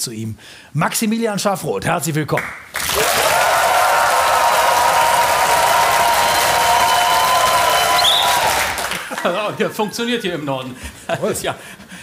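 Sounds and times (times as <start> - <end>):
speech: 0.0 - 3.0, 9.2 - 11.9
studio audience applause: 2.8 - 9.6
whistle: 7.7 - 8.5
laughter: 8.8 - 12.0.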